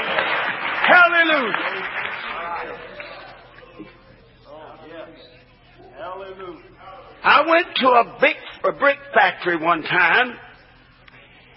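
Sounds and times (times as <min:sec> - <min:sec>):
audience clapping hands in praise: 0:00.0 - 0:03.6
speech: 0:00.9 - 0:02.0, 0:07.2 - 0:10.5.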